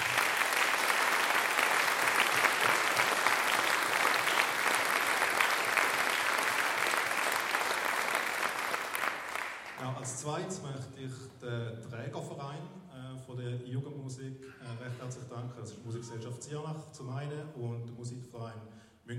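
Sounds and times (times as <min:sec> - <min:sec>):
audience applause: 0:00.0 - 0:09.9
speech: 0:10.2 - 0:19.1.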